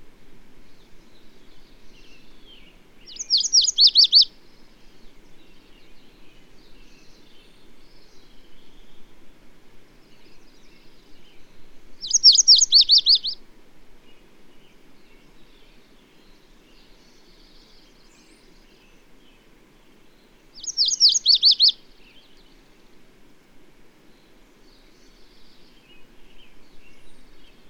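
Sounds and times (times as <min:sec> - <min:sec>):
bird song of rapid high sweeping notes: 0:03.1 - 0:04.3, 0:12.0 - 0:13.4, 0:20.6 - 0:21.8.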